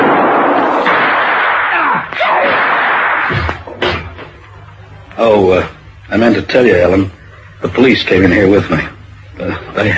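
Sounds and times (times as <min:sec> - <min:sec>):
gunshot in a radio drama: 0:00.0 - 0:04.2
noisy sound: 0:00.0 - 0:09.9
speech: 0:05.2 - 0:09.9.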